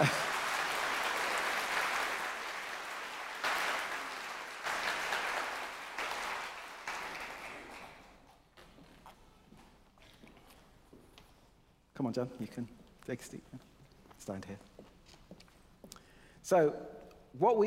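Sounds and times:
audience applause: 0.0 - 8.2
speech: 12.0 - 13.7, 14.3 - 15.0, 16.5 - 17.6.

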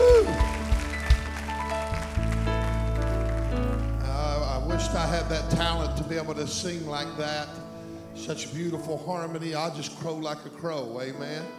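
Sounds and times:
audience hand clapping: 0.0 - 4.1
speech: 5.0 - 11.5.

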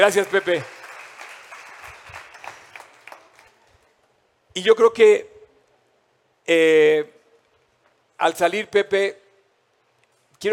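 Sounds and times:
speech: 0.0 - 0.8, 4.6 - 5.3, 6.5 - 7.2, 8.2 - 9.2
audience applause: 0.0 - 3.9.

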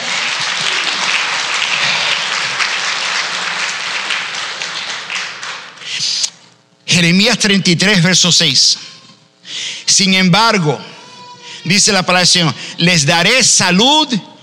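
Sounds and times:
large crowd clapping loudly: 0.0 - 6.3
speech: 7.0 - 8.9, 10.0 - 10.9, 11.6 - 14.3.

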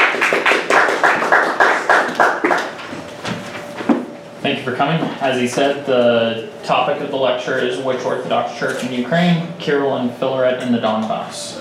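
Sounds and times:
round of applause: 0.0 - 2.8
speech: 4.7 - 11.6.

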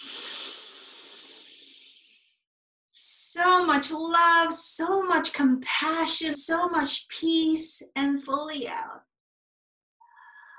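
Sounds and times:
deep breath during guided group meditation: 0.0 - 2.4
speech: 3.6 - 9.1.

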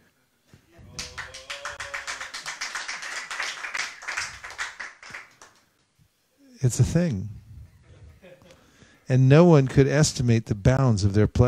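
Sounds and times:
audience clapping: 0.8 - 5.9
speech: 6.6 - 7.4, 9.1 - 11.4.

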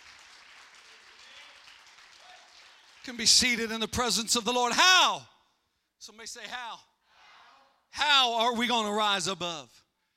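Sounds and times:
church audience clapping hands: 0.0 - 3.5
speech: 3.1 - 5.4, 6.0 - 6.9, 7.9 - 9.8.

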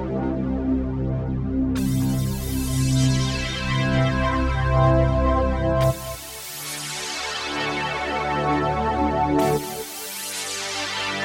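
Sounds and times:
Waldorf Microwave XTk synthesizer pad chords: 0.1 - 11.2.

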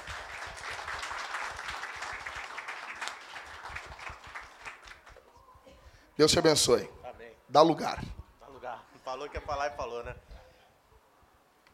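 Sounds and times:
audience applause: 0.0 - 5.2
speech: 6.2 - 8.2, 9.2 - 10.3.

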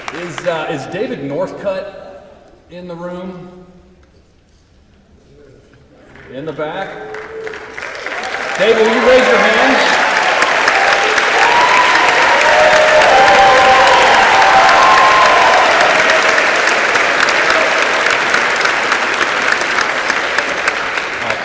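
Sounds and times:
audience applause: 0.0 - 0.7, 6.1 - 21.4
speech: 0.2 - 2.0, 2.7 - 3.8, 6.3 - 7.2, 8.6 - 9.9.

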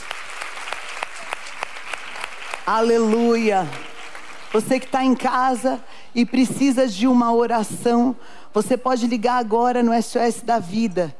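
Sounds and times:
audience applauding: 0.0 - 5.3
speech: 2.7 - 3.9, 4.5 - 11.1.

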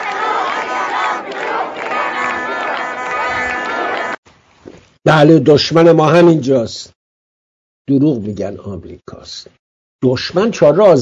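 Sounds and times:
crowd shouting protest slogans: 0.0 - 4.2
speech: 5.1 - 7.0, 7.9 - 11.0.

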